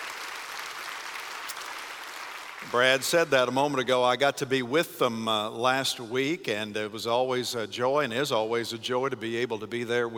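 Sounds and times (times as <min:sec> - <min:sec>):
audience applause welcoming guests: 0:00.0 - 0:03.0
speech: 0:02.6 - 0:10.1.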